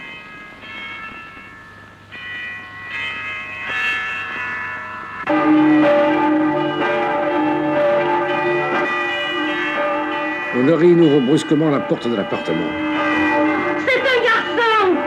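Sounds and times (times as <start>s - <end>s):
church bells of the Accoules bell tower pealing at dawn on Easter morning: 0.0s - 15.0s
speech: 10.6s - 13.0s.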